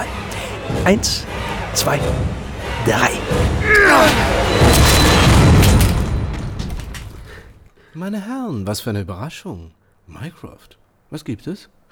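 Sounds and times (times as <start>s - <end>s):
speech: 0.8s - 4.3s, 8.0s - 11.8s
heavy door being broken open: 3.3s - 7.3s.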